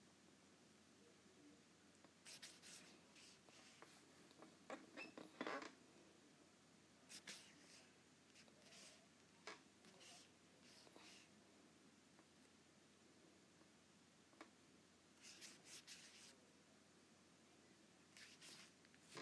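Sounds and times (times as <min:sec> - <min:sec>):
low steady hum: 0:00.0 - 0:19.2
Apple Pencil tapping and scratching across an iPad screen: 0:02.1 - 0:05.7, 0:07.1 - 0:11.3, 0:15.2 - 0:16.4, 0:18.2 - 0:19.2.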